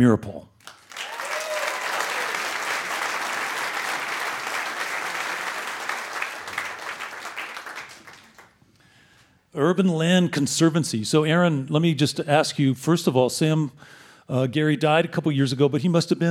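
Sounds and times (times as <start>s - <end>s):
speech: 0.0s - 0.5s, 9.6s - 16.2s
stage audience applause welcoming a guest: 0.6s - 8.6s.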